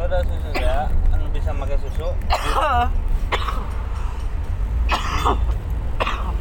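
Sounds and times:
speech: 0.1s - 3.6s
person coughing: 0.5s - 0.9s, 2.3s - 3.7s, 4.9s - 6.3s.

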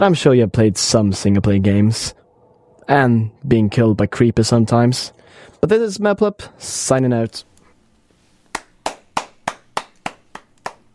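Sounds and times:
speech: 0.0s - 2.2s, 2.9s - 7.5s
person clapping hands: 8.5s - 10.9s.

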